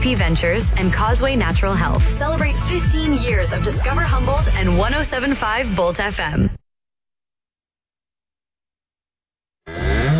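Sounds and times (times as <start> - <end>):
speech: 0.0 - 6.6
cow mooing: 9.7 - 10.1.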